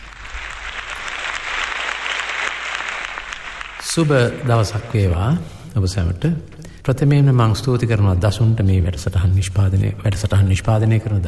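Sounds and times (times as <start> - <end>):
audience clapping at a song concert: 0.0 - 5.4
speech: 3.9 - 11.2.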